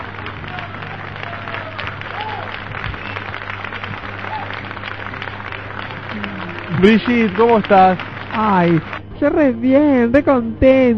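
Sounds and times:
audience applause: 0.0 - 9.0
speech: 6.8 - 10.9.

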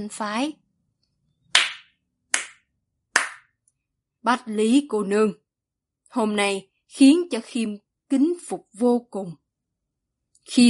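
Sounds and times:
speech: 0.0 - 0.6, 4.2 - 5.4, 6.1 - 9.4, 10.5 - 10.6
light hand claps: 1.5 - 2.6, 3.2 - 3.5.

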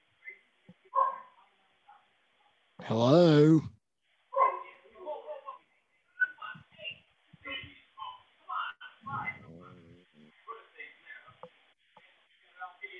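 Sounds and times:
several dogs barking and yipping: 0.9 - 1.4, 4.4 - 4.8
speech: 2.9 - 3.7
dogs yelping: 9.1 - 10.2.

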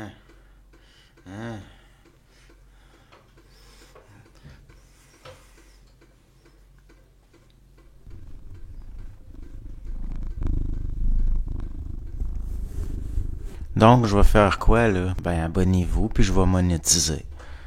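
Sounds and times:
speech: 0.0 - 0.2, 13.8 - 17.3
cat purring: 8.0 - 15.1.

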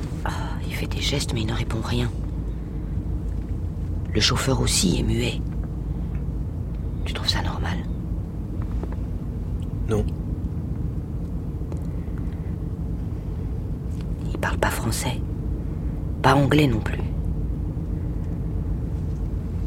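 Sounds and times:
old Ford car driving, interior rumble: 0.0 - 19.6
speech: 0.2 - 2.2, 4.1 - 5.5, 9.9 - 10.2, 14.6 - 15.3, 16.2 - 17.1.

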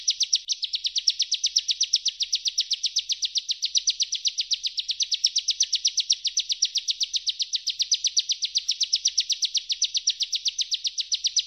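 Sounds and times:
bar-winged prinia chipping trill: 0.0 - 11.4.

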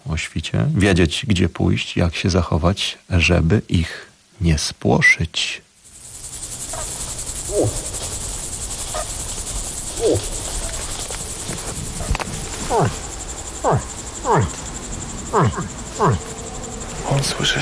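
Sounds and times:
speech: 0.2 - 5.6, 7.5 - 7.9, 17.3 - 17.6
bull moose grunting and moaning: 7.4 - 8.0, 9.9 - 10.8, 12.5 - 17.6.

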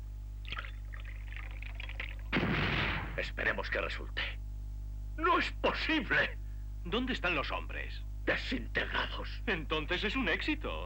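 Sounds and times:
low steady hum: 0.0 - 10.8
whisky pouring into a glass: 0.4 - 2.3
loud burst of noise: 2.3 - 3.2
speech: 3.2 - 4.3, 5.2 - 10.8.

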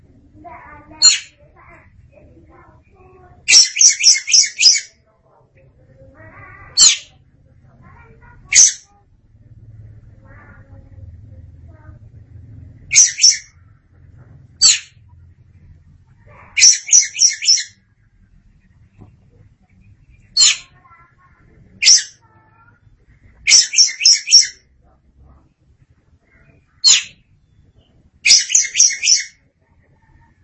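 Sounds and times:
Oriental magpie-robin singing: 0.7 - 1.7, 2.6 - 5.0, 6.2 - 7.2, 7.9 - 8.9, 12.9 - 13.7, 14.6 - 15.0, 16.4 - 17.8, 20.0 - 24.7, 26.3 - 29.4.

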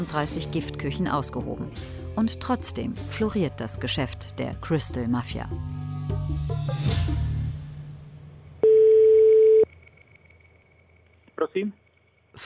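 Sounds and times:
speech: 0.0 - 7.2, 11.6 - 11.8
telephone line tone while call connects: 8.6 - 9.7.

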